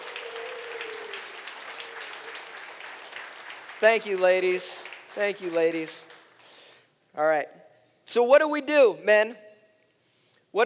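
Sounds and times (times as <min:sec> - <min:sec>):
audience applause at a men's breakfast gathering: 0:00.0 - 0:06.4
speech: 0:03.8 - 0:06.2, 0:07.2 - 0:09.4.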